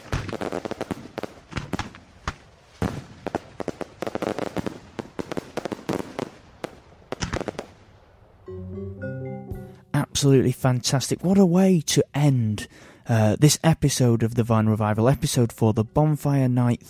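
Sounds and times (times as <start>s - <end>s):
fireworks display exploding: 0.0s - 8.3s
short burst of tonal music: 8.4s - 10.3s
speech: 10.2s - 16.8s.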